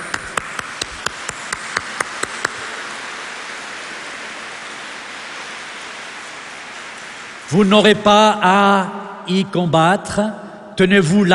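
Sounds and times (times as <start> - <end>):
crowd clapping in unison: 0.0 - 7.8
hiss: 0.0 - 11.3
speech: 7.5 - 11.3.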